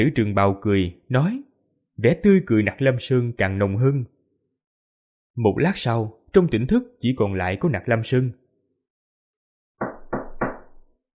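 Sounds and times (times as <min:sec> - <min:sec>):
speech: 0:00.0 - 0:04.1, 0:05.4 - 0:08.4
firm heavy knocking on a door: 0:09.8 - 0:10.9.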